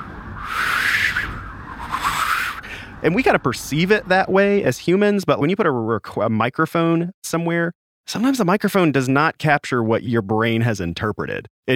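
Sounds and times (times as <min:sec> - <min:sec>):
voice imitating whistling wind: 0:00.0 - 0:02.7
speech: 0:03.0 - 0:11.7.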